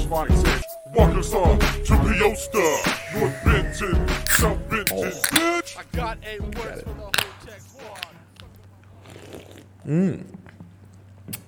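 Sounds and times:
speech: 0:00.1 - 0:08.0, 0:09.3 - 0:10.4
beer cans being cracked open: 0:02.7 - 0:09.8.

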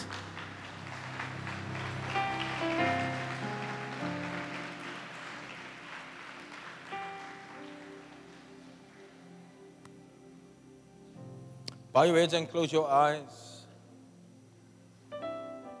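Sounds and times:
audience clapping: 0:00.0 - 0:09.2
speech: 0:12.0 - 0:13.5.

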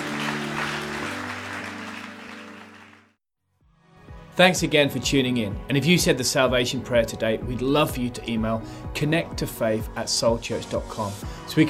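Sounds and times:
audience applause: 0:00.0 - 0:03.2
speech: 0:04.4 - 0:11.6.

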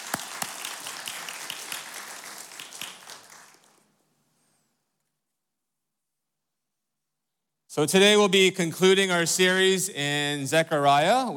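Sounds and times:
church crowd clapping to welcome a guest: 0:00.0 - 0:04.0
speech: 0:07.7 - 0:11.3.

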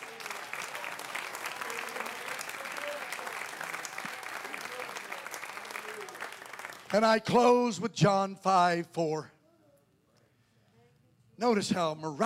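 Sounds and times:
audience clapping hands: 0:00.0 - 0:07.5
speech: 0:06.9 - 0:09.3, 0:11.4 - 0:12.2.

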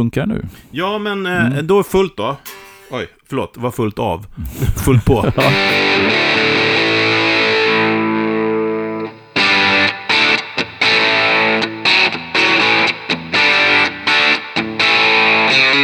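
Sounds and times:
speech: 0:00.0 - 0:05.8
laughter: 0:00.5 - 0:05.9
electric guitar through a fuzz pedal: 0:05.6 - 0:15.7.

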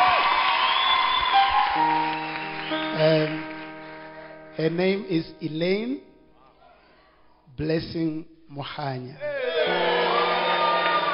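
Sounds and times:
audience clapping: 0:00.0 - 0:04.4, 0:09.7 - 0:11.1
speech: 0:04.6 - 0:06.1, 0:07.6 - 0:09.9.

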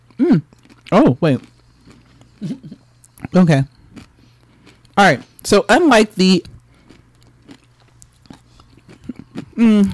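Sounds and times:
person chewing a pickle: 0:00.0 - 0:09.9
speech: 0:00.2 - 0:01.5, 0:02.4 - 0:03.8, 0:05.0 - 0:06.5, 0:09.6 - 0:09.9
person humming: 0:09.5 - 0:09.9.

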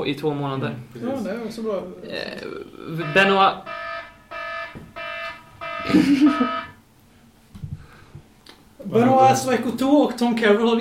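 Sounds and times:
speech: 0:00.0 - 0:03.8, 0:05.9 - 0:06.6, 0:08.9 - 0:10.7
gas alarm going off: 0:03.0 - 0:06.8
laughter: 0:05.8 - 0:06.8.

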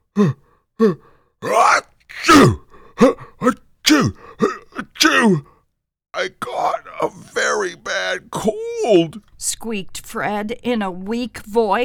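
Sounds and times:
speech: 0:00.2 - 0:01.7, 0:02.3 - 0:04.1, 0:08.1 - 0:11.8
person imitating sneezes: 0:00.2 - 0:05.5, 0:06.2 - 0:09.2.

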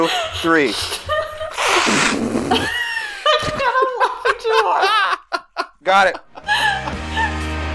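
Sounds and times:
speech: 0:00.0 - 0:01.2, 0:01.8 - 0:02.8, 0:05.9 - 0:06.3
people blowing their noses: 0:00.0 - 0:04.8, 0:06.3 - 0:07.5
laughter: 0:00.0 - 0:07.6.

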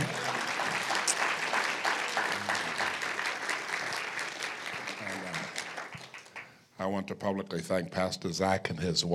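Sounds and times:
audience hand clapping: 0:00.0 - 0:06.7
speech: 0:06.9 - 0:09.1.

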